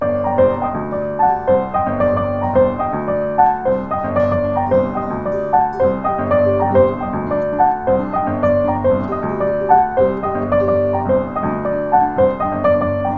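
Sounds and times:
salsa music: 0:00.0 - 0:13.1.

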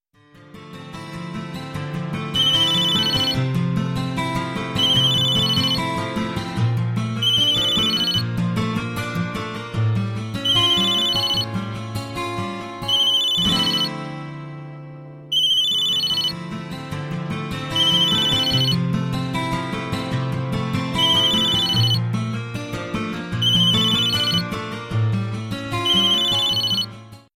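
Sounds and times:
guitar business tone: 0:00.2 - 0:27.3.

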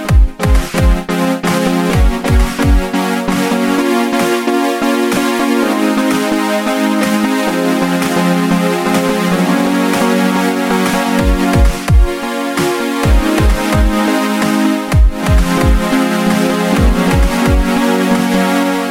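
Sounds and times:
trance ringtone: 0:00.1 - 0:18.7.

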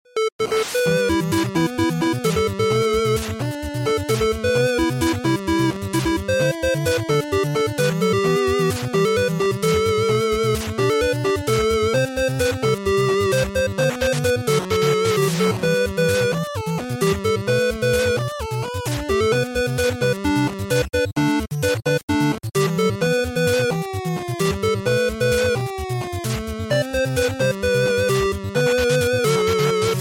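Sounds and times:
8-bit music: 0:00.0 - 0:29.9.

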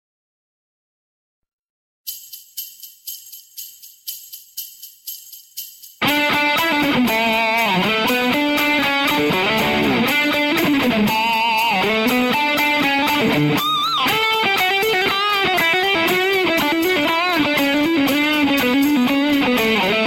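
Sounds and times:
christmas rock music: 0:05.6 - 0:20.0.

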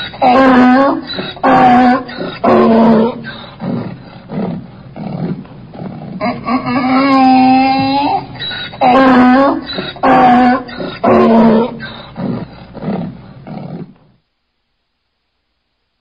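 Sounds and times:
angry donkey braying loudly: 0:00.0 - 0:13.9.

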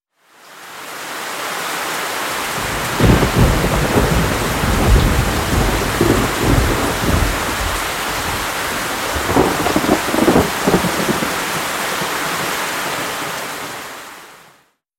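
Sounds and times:
rain: 0:00.1 - 0:14.7
storm: 0:02.6 - 0:12.5.

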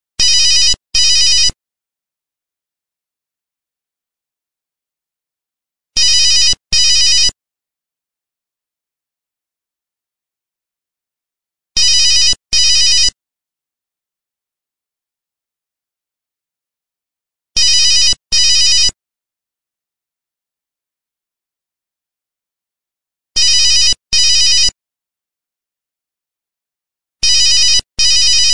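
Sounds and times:
original ringtone: 0:00.2 - 0:01.6, 0:06.0 - 0:07.4, 0:11.8 - 0:13.2, 0:17.6 - 0:19.0, 0:23.4 - 0:24.8, 0:27.2 - 0:28.5.

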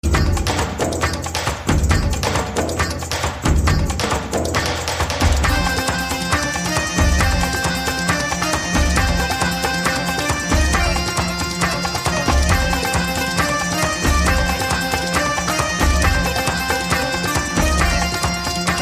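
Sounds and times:
kashmiri music: 0:00.0 - 0:18.8.

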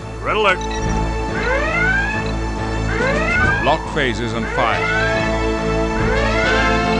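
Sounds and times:
red alert alarm: 0:00.4 - 0:06.9.

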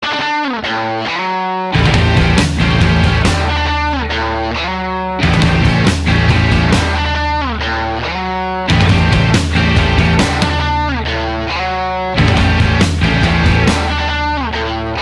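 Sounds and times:
guitar intro: 0:00.0 - 0:15.0.

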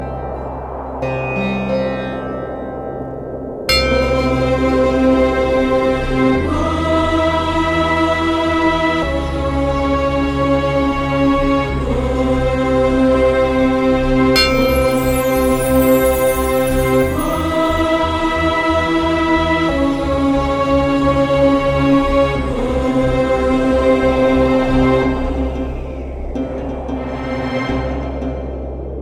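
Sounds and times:
soothing morning music: 0:00.0 - 0:29.0.

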